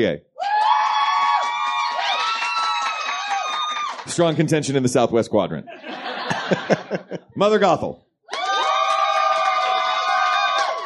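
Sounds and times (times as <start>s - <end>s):
speech: 0.0s - 0.3s, 4.0s - 8.0s
crowd cheering and whooping: 0.4s - 4.1s, 8.3s - 10.8s
laughter: 5.6s - 7.4s.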